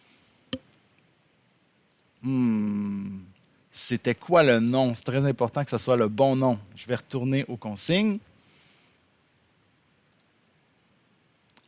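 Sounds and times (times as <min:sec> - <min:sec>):
speech: 0:02.2 - 0:02.5, 0:03.8 - 0:08.3
mouse clicks while exporting audio in an editor: 0:10.1 - 0:10.4.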